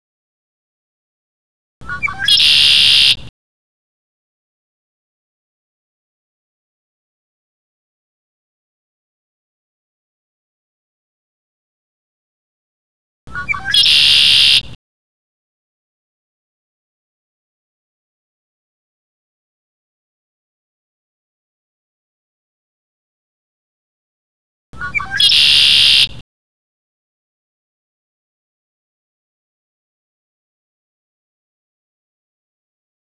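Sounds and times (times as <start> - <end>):
conklaree birdsong: 1.8 - 3.3, 13.3 - 14.8, 24.8 - 26.2.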